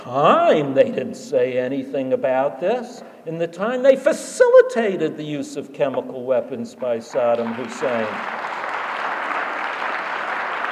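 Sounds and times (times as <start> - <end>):
speech: 0.0 - 8.4
audience applause: 7.1 - 10.6.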